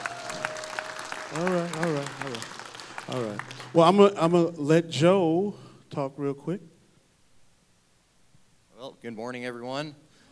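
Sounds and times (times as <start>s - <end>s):
church congregation applause: 0.0s - 3.8s
speech: 1.3s - 6.7s, 8.8s - 10.0s.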